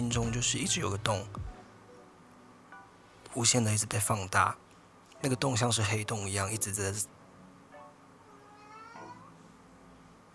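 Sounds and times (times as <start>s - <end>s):
speech: 0.1s - 1.5s, 3.4s - 4.6s, 5.2s - 7.2s
cat meowing affectionately: 8.2s - 9.4s.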